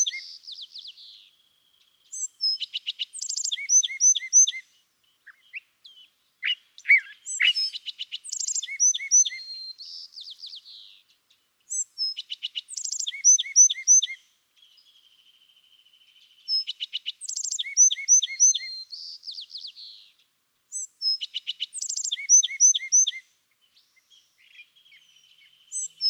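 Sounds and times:
California Thrasher calls: 0:00.0 - 0:26.0.

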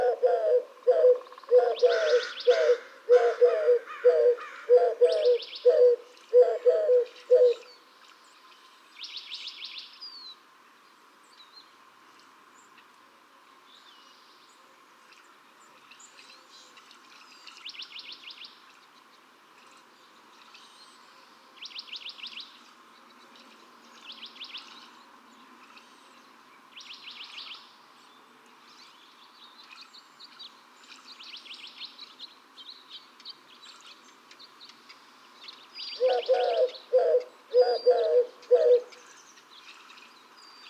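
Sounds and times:
Eurasian Collared-dove: 0:00.0 - 0:07.7, 0:35.9 - 0:39.1.

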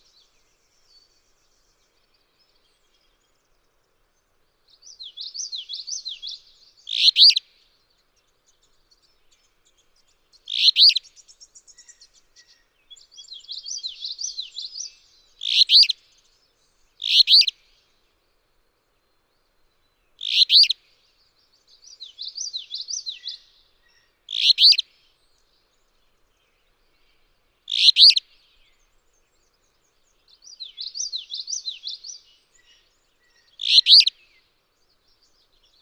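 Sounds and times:
songbird warbling: 0:06.9 - 0:07.4, 0:10.5 - 0:11.0, 0:15.4 - 0:16.0, 0:17.0 - 0:17.5, 0:20.2 - 0:20.8, 0:24.3 - 0:24.8, 0:27.7 - 0:28.2, 0:30.6 - 0:34.2.

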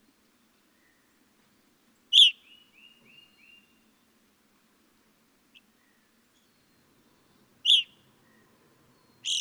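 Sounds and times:
Evening Grosbeak calling: 0:02.1 - 0:03.3, 0:07.3 - 0:09.3.

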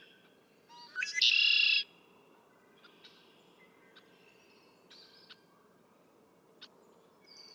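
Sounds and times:
Red-winged Blackbird: 0:00.7 - 0:01.9.

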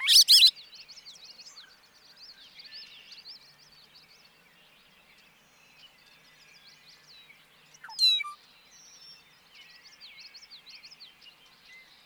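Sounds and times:
bobolink singing bubbling, jangling notes: 0:00.0 - 0:00.5.

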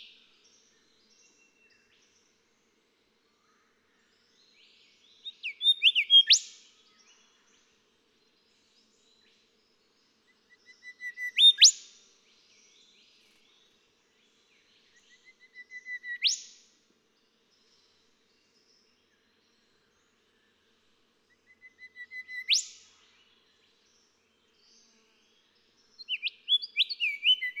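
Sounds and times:
golden whistler song: 0:05.3 - 0:06.5, 0:10.7 - 0:11.8, 0:15.1 - 0:16.6, 0:21.4 - 0:22.8, 0:26.0 - 0:27.5.

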